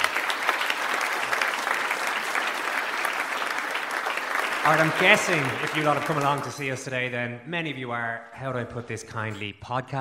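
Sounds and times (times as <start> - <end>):
live crowd applauding: 0.0 - 6.9
speech: 4.6 - 10.0.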